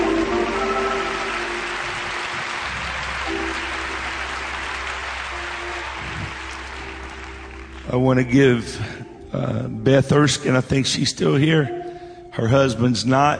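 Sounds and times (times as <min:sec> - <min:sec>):
steady applause from a crowd: 0:00.0 - 0:08.3
speech: 0:07.9 - 0:11.8, 0:12.4 - 0:13.3.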